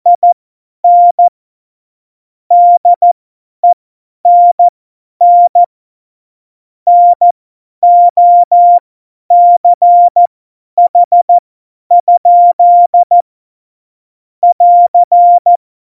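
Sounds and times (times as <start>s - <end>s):
CW Morse code beeps: 0.1s - 1.3s, 2.5s - 5.7s, 6.9s - 10.3s, 10.9s - 11.3s, 12.0s - 13.2s, 14.4s - 15.6s.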